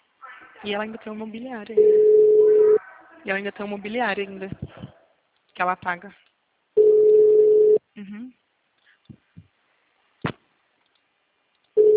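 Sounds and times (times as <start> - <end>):
speech: 0.6 - 2.2, 3.2 - 4.8, 5.6 - 6.3, 8.0 - 8.4
ringback tone of an unanswered telephone call: 1.8 - 2.8, 6.8 - 7.8.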